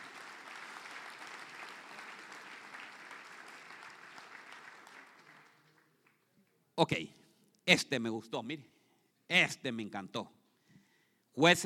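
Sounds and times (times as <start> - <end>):
audience applauding: 0.0 - 6.2
speech: 6.8 - 8.7, 9.3 - 10.4, 11.4 - 11.6.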